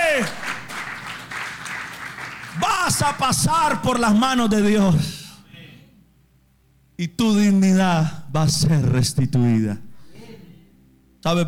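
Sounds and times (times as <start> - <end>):
audience applause: 0.0 - 3.2
speech: 3.0 - 5.2, 7.0 - 9.9, 11.2 - 11.4.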